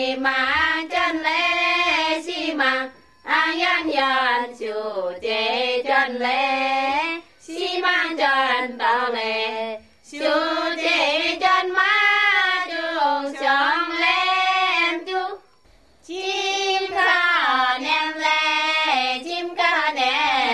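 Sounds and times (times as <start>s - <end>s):
women chanting in Chengyang China: 0.0s - 20.5s.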